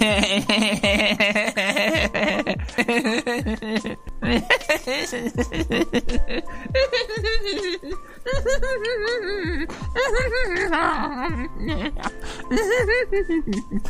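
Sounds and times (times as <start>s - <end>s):
person giggling: 0.0s - 13.8s.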